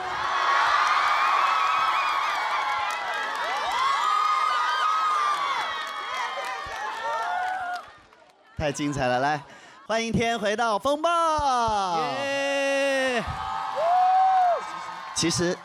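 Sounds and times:
large audience cheering, whooping and shouting: 0:00.0 - 0:08.0, 0:12.1 - 0:15.6
clapping: 0:02.3 - 0:08.4
speech: 0:08.6 - 0:12.4, 0:15.2 - 0:15.6.

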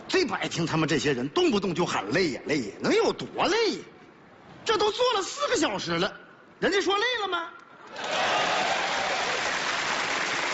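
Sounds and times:
speech: 0:00.1 - 0:04.0, 0:04.7 - 0:08.4
crowd applauding: 0:07.9 - 0:10.5.

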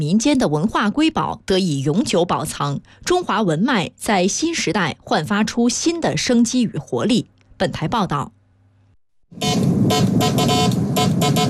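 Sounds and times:
speech: 0:00.0 - 0:08.4, 0:09.3 - 0:11.4
buzzy beeping from a 1970s telegraph control box: 0:09.4 - 0:11.4.

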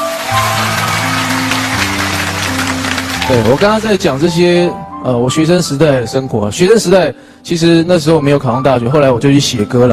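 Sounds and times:
applause: 0:00.0 - 0:04.5
speech: 0:03.3 - 0:09.9.

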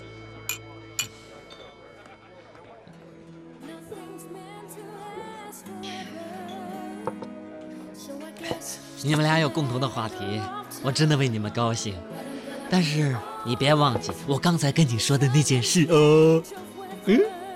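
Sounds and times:
glasses clinking in a toast: 0:00.0 - 0:02.4, 0:13.9 - 0:14.3
speech: 0:08.5 - 0:17.3.

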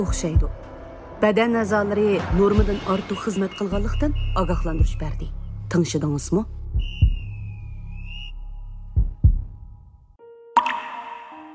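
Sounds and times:
speech: 0:00.0 - 0:00.6, 0:01.2 - 0:06.9
faint steady whistling tone: 0:03.3 - 0:05.4, 0:06.8 - 0:09.0
water drops plopping: 0:10.6 - 0:11.4.

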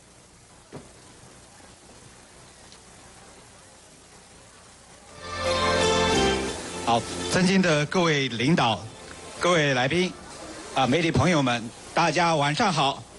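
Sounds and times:
low steady hiss: 0:00.0 - 0:13.1
speech: 0:07.0 - 0:10.2, 0:10.8 - 0:13.0.

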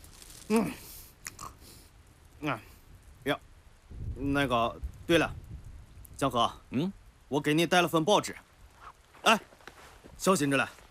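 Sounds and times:
soft mouth noises from chewing flower cakes: 0:00.4 - 0:01.9
speech: 0:00.5 - 0:00.9, 0:02.4 - 0:03.5, 0:04.2 - 0:05.4, 0:06.2 - 0:08.4, 0:09.2 - 0:09.5, 0:10.2 - 0:10.8.

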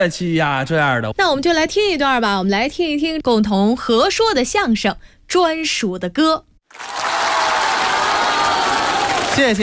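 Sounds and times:
speech: 0:00.0 - 0:07.1, 0:09.4 - 0:09.6
audience applause at a crosstalk comedy show: 0:06.7 - 0:09.6.

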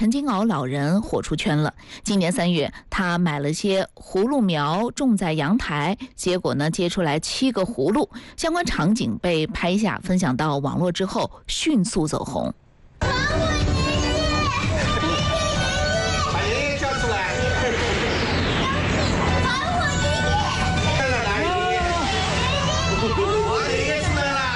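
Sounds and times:
speech: 0:00.0 - 0:13.2
children chattering and calling out with a 75-year-old man at his old home in Shaoxing: 0:13.0 - 0:24.1.

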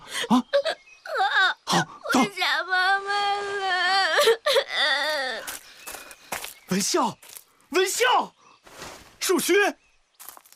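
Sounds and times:
speech: 0:00.3 - 0:00.5, 0:06.8 - 0:07.2, 0:08.0 - 0:08.4, 0:09.3 - 0:09.8
child crying: 0:00.6 - 0:05.5.

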